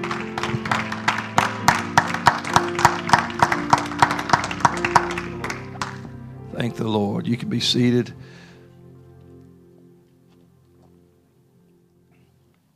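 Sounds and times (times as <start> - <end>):
audience hand clapping: 0.0 - 6.2
low sustained music or organ tones: 0.0 - 12.7
speech: 6.6 - 8.5.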